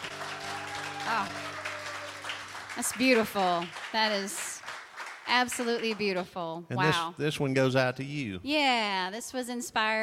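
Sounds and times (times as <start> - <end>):
audience applause: 0.0 - 6.2
speech: 1.1 - 1.5, 2.8 - 4.5, 5.3 - 10.0.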